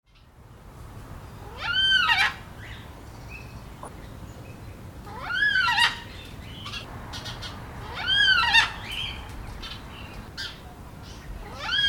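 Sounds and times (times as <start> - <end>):
black cockatoo calls with harsh pulses, wailing note and squawks: 1.4 - 2.8, 5.1 - 10.7, 11.4 - 11.8.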